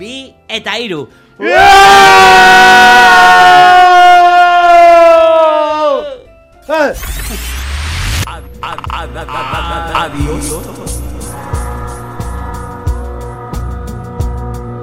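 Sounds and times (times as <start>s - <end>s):
speech: 0.0s - 3.6s
people shouting together: 1.4s - 6.2s.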